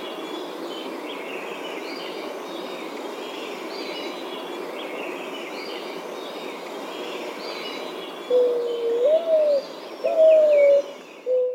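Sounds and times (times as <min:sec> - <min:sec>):
faint noise: 0:00.0 - 0:11.5
Mourning Dove cooing: 0:08.3 - 0:11.5.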